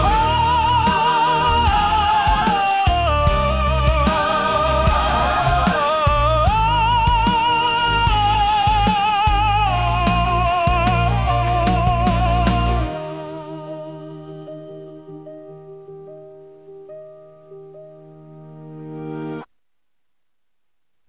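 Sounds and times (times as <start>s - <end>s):
musical anthem: 0.0s - 16.1s.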